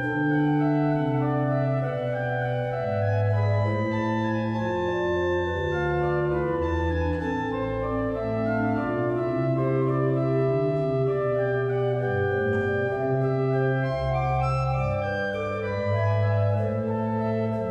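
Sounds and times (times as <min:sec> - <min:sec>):
organ playing: 0:00.0 - 0:17.6.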